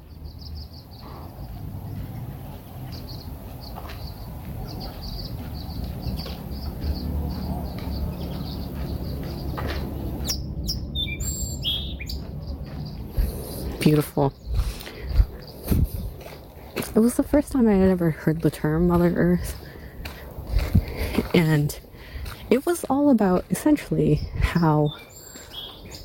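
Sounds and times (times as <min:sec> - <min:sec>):
low constant rumble: 0:00.0 - 0:26.0
sparrow singing: 0:00.0 - 0:26.0
speech: 0:13.9 - 0:14.4, 0:17.0 - 0:19.6, 0:21.4 - 0:21.9, 0:22.5 - 0:25.1.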